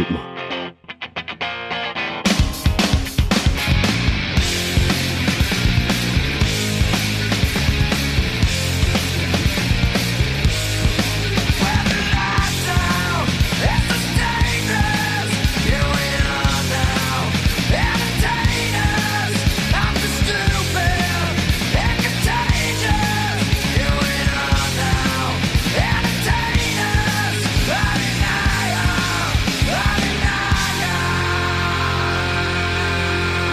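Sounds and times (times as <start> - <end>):
loud distorted guitars: 0.0 - 33.5
grunge rock song: 1.4 - 33.5.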